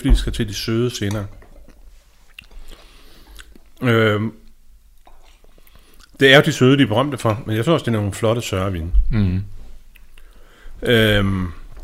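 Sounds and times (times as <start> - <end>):
speech: 0.0 - 1.4, 3.8 - 4.4, 6.2 - 9.6, 10.8 - 11.6
chewing gouda cheese: 1.6 - 3.8, 5.0 - 6.2.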